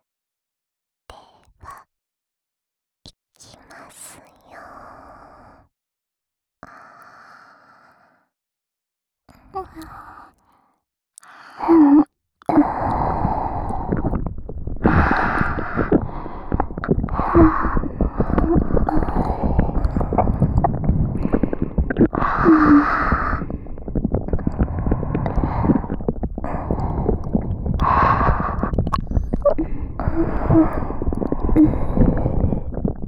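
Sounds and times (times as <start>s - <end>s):
ear licking on both sides: 12.5s - 33.0s.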